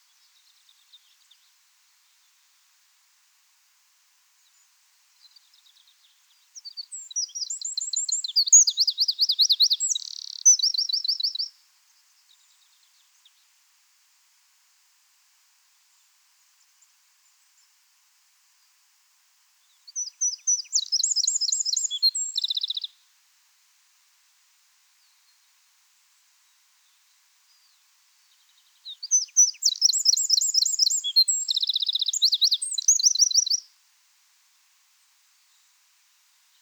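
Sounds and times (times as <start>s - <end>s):
Eurasian wren song: 5.2s - 11.6s, 19.7s - 23.0s, 27.5s - 33.7s.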